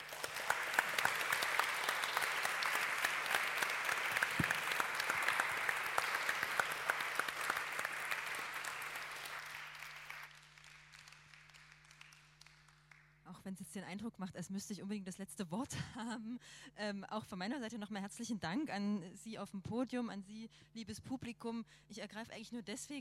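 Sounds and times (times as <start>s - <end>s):
audience applause: 0.0s - 13.0s
speech: 13.7s - 22.9s.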